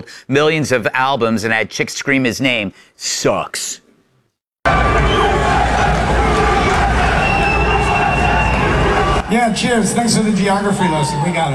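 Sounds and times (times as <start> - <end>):
speech: 0.0 - 3.8, 4.7 - 6.4, 9.3 - 11.5
concert audience chanting: 4.7 - 9.3.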